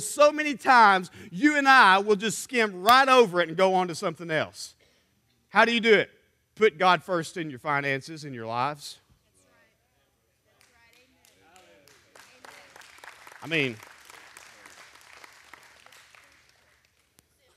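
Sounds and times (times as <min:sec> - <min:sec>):
speech: 0:00.0 - 0:04.8, 0:05.5 - 0:09.0, 0:13.4 - 0:13.9
light half-hearted audience clapping: 0:10.6 - 0:17.5.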